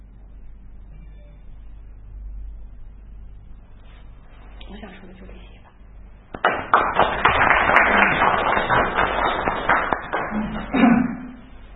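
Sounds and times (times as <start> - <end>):
speech: 4.7 - 5.7
audience applause: 6.4 - 10.8.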